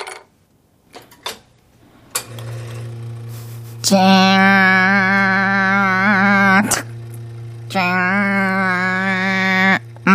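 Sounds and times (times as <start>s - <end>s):
robot barista machine motor humming making a latte: 1.8s - 10.1s
speech: 3.9s - 4.3s.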